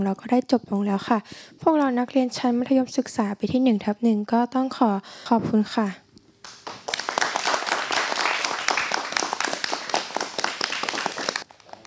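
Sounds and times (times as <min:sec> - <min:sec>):
speech: 0:00.0 - 0:06.0
students applauding: 0:06.4 - 0:11.8.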